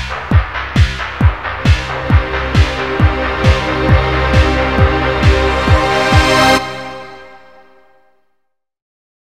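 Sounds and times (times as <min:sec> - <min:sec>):
sinister strings: 0:01.3 - 0:08.0.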